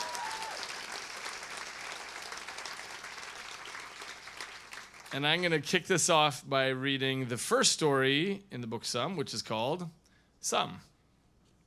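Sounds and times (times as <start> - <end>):
audience applause: 0.0 - 5.2
speech: 5.1 - 10.9.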